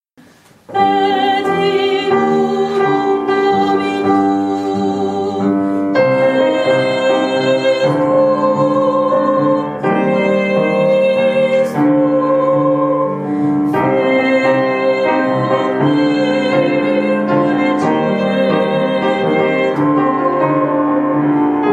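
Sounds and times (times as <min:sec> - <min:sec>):
soprano singing: 0:00.6 - 0:21.7.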